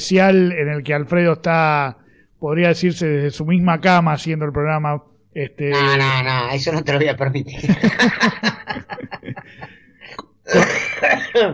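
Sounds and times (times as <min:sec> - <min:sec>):
speech: 0:00.0 - 0:08.6, 0:11.4 - 0:11.5
laughter: 0:07.6 - 0:09.8, 0:10.5 - 0:11.5
person coughing: 0:10.1 - 0:11.5.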